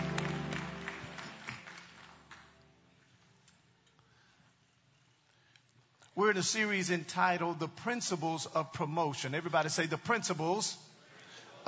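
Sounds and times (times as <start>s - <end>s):
audience hand clapping: 0.0s - 3.2s
speech: 6.2s - 10.9s.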